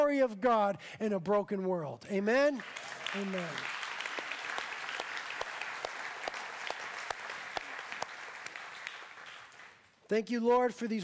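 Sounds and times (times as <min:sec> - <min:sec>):
speech: 0:00.1 - 0:03.8, 0:10.1 - 0:11.0
audience clapping and applauding: 0:02.4 - 0:10.0.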